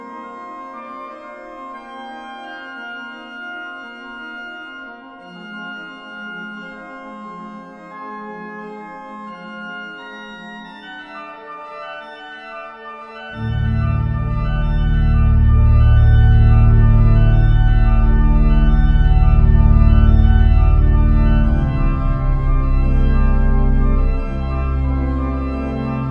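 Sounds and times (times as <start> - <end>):
carillon playing a toccata: 13.4 - 26.0.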